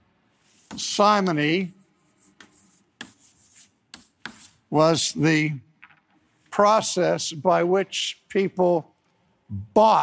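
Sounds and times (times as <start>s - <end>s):
writing the word simony on a board: 0.3s - 4.7s
speech: 0.7s - 1.8s, 4.7s - 5.7s, 6.6s - 8.9s, 9.5s - 10.0s.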